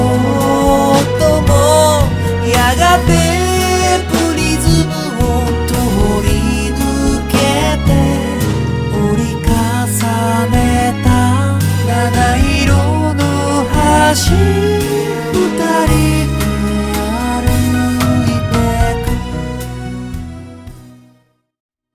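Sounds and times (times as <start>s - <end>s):
ballad music: 0.0s - 21.3s.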